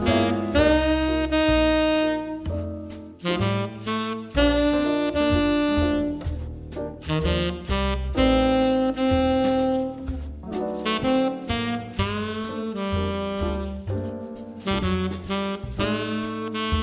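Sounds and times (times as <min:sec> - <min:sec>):
tenor saxophone playing: 0:00.0 - 0:16.8.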